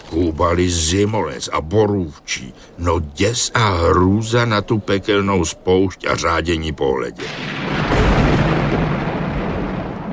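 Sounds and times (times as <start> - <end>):
speech: 0.1 - 8.1
thunder rumbling: 7.2 - 10.1.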